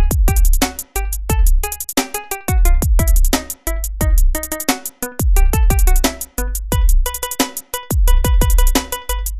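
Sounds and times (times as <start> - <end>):
circus beat: 0.0 - 9.3.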